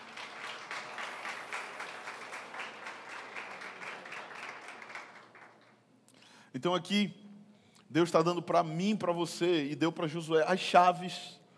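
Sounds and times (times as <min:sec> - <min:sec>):
audience applause: 0:00.0 - 0:05.8
speech: 0:06.6 - 0:07.2, 0:07.9 - 0:11.4.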